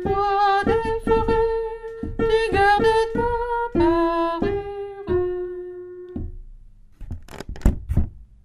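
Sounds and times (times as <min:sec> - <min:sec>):
soprano singing: 0:00.0 - 0:06.4.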